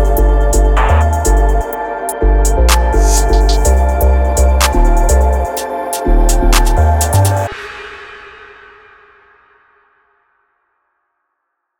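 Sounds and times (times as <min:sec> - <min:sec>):
ambient experimental music: 0:00.0 - 0:08.4.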